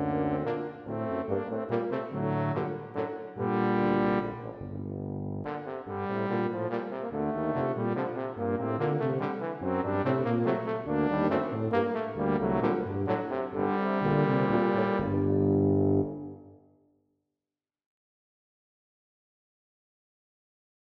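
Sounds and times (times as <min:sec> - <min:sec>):
tuba quartet playing a dance: 0:00.0 - 0:16.4.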